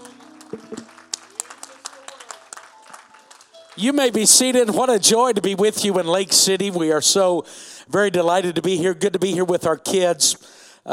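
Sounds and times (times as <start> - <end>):
audience round of applause: 0.0 - 4.6
speech: 3.8 - 10.9.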